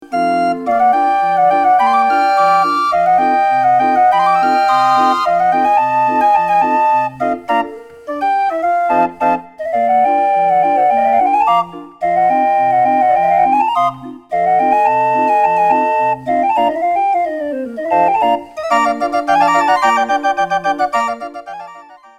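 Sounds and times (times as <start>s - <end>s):
31-key concert organ: 0.0s - 22.1s.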